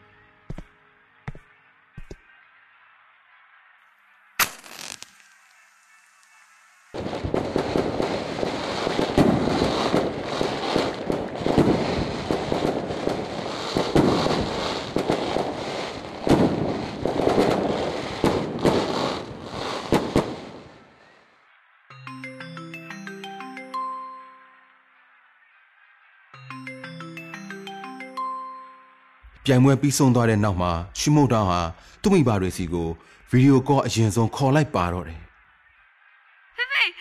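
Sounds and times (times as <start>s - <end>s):
string of firecrackers lit at night exploding: 4.4s - 21.0s
speech: 29.5s - 35.2s.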